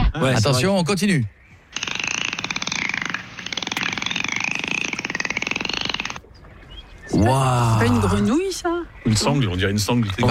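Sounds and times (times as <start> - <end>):
speech: 0.2 - 1.9, 7.1 - 10.2
dolphin buzzing burst of clicks with whistly tone: 1.7 - 6.3.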